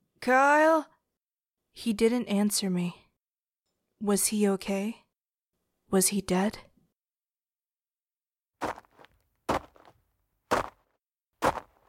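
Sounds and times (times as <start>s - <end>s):
speech: 0.2s - 0.9s, 1.8s - 3.0s, 4.0s - 5.0s, 5.9s - 6.7s
footsteps beside a car: 8.6s - 11.8s.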